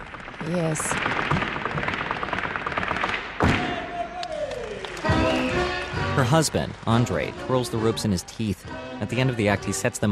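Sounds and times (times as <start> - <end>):
bolas cracking against a special parquet floor during a gaucho circus act: 0.0 - 3.7
speech: 0.4 - 1.6, 6.2 - 10.1
constant crowd-like wash of noise: 3.5 - 10.1.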